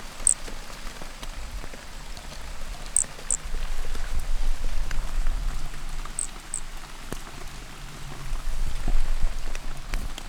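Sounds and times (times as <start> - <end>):
loud continuous rain: 0.0 - 10.2
toadlet squeaky calls: 0.1 - 0.5, 3.0 - 3.4, 6.2 - 6.6.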